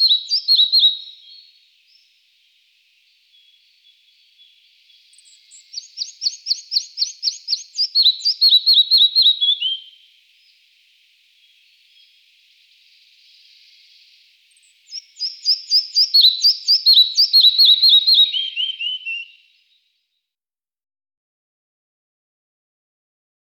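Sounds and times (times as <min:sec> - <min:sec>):
red-breasted flycatcher singing: 0:00.0 - 0:02.1, 0:03.2 - 0:10.6, 0:12.8 - 0:19.4.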